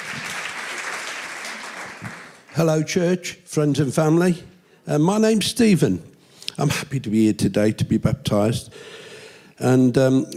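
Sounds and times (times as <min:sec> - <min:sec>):
audience applause: 0:00.0 - 0:02.6
speech: 0:02.6 - 0:08.9, 0:09.6 - 0:10.3.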